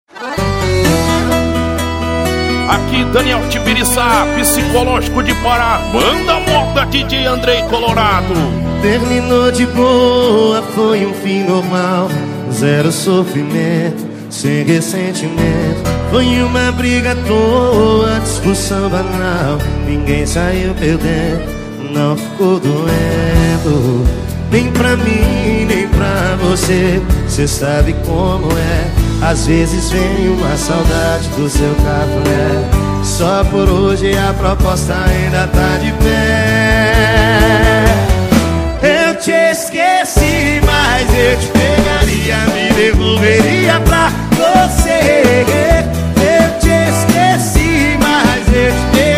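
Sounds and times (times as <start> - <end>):
sertanejo music: 0.1 - 49.1
rodeo announcers speaking: 2.7 - 8.6.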